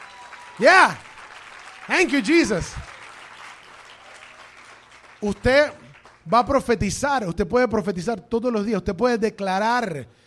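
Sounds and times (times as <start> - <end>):
crowd applauding: 0.0 - 6.5
speech: 0.6 - 1.1, 1.9 - 2.9, 5.2 - 10.2.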